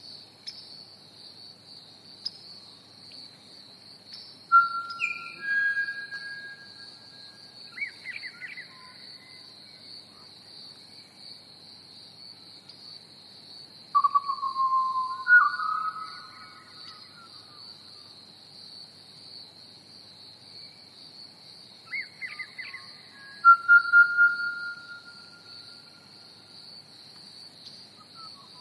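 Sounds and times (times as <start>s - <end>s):
Pied Butcherbird song: 4.1s - 9.8s, 14.0s - 18.1s, 21.9s - 26.0s, 27.6s - 28.6s.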